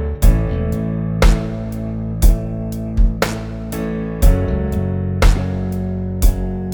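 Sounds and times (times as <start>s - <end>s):
rock chord progression in A: 0.2s - 6.7s.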